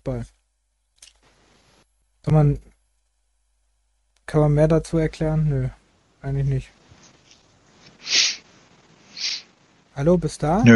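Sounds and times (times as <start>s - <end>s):
speech: 0.0s - 0.4s, 2.2s - 2.7s, 4.3s - 6.8s, 10.0s - 10.7s
person sniffling from a cold: 8.0s - 8.5s, 9.2s - 9.5s.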